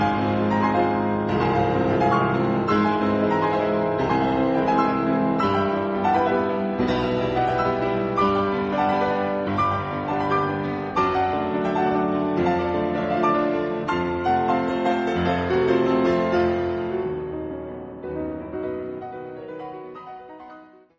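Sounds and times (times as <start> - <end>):
piano sonata in B flat minor: 0.0 - 20.9.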